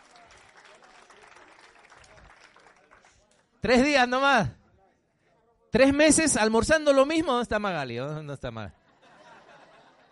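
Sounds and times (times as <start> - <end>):
audience applause: 0.0 - 3.2
speech: 3.6 - 4.6, 5.7 - 8.8
laughter: 8.8 - 10.1.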